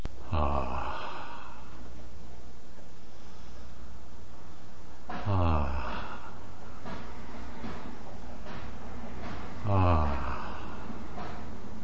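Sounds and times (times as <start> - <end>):
person breathing at about 14 breaths per minute: 0.2 - 2.0, 3.0 - 4.7, 5.3 - 7.6, 9.6 - 11.3
loud breathy human exhale: 0.3 - 1.9, 5.3 - 7.5, 9.6 - 11.2.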